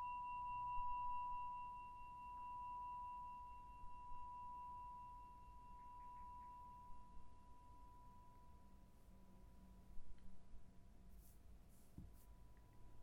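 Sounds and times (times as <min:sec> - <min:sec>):
singing bowl: 0:00.0 - 0:10.1.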